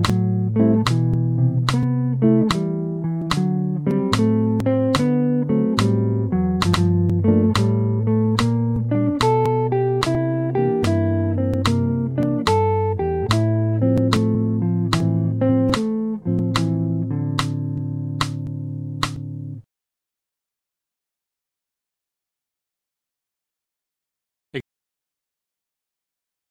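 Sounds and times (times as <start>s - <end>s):
jazz music: 0.0s - 19.6s.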